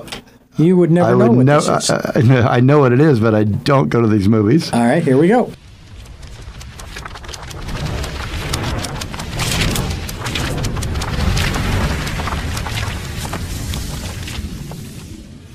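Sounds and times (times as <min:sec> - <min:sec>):
speech: 0:00.0 - 0:05.6
fluttering papery flips and crackles of a studio logo intro: 0:05.6 - 0:15.5
low rumbling boom: 0:05.6 - 0:15.5.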